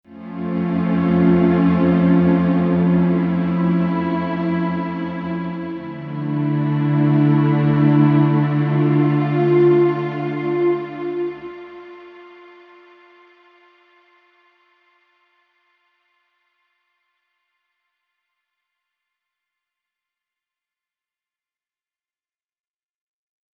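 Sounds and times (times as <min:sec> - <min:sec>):
NRG synth pad: 0:00.1 - 0:14.3.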